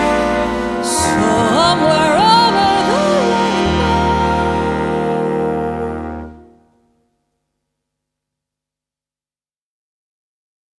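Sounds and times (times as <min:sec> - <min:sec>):
swing orchestra playing: 0:00.0 - 0:06.5.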